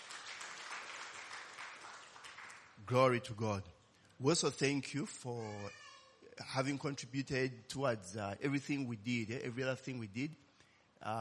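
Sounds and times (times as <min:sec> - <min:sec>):
church gathering members clapping in thanks: 0:00.0 - 0:02.8
speech: 0:02.9 - 0:05.8, 0:06.4 - 0:10.4, 0:11.0 - 0:11.1.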